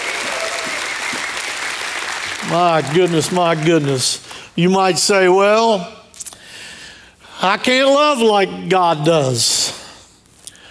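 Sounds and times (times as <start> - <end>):
church congregation clapping in praise: 0.0 - 4.4
speech: 2.4 - 6.0, 7.4 - 9.6.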